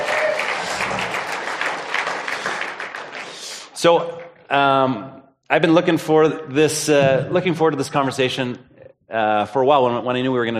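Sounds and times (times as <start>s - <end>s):
crowd applauding: 0.0s - 3.6s
speech: 3.8s - 10.5s.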